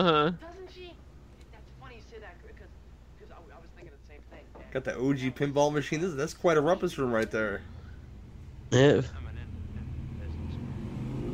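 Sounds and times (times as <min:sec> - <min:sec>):
speech: 0:00.0 - 0:00.5, 0:04.7 - 0:07.8, 0:08.7 - 0:09.2
loud motorcycle roaring by: 0:08.8 - 0:11.3.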